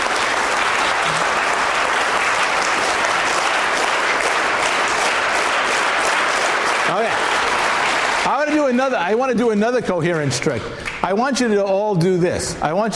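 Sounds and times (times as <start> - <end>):
audience clapping together: 0.0 - 11.5
speech: 8.7 - 12.9.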